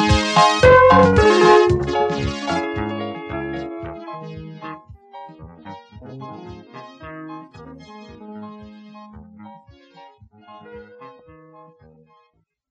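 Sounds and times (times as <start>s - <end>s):
African style instrumental music: 0.0s - 3.0s.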